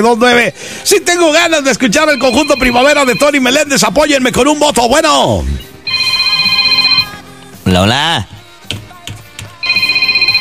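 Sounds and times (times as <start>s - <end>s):
speech: 0.0s - 5.7s, 7.7s - 8.3s
telephone ringing with electronic trill: 1.9s - 3.9s, 5.7s - 7.3s, 9.6s - 10.4s.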